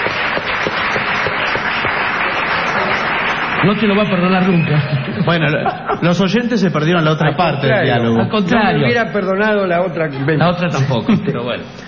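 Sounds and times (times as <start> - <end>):
audience applause: 0.0 - 5.6
speech: 3.6 - 11.8
laughter: 4.5 - 9.1, 10.0 - 11.8.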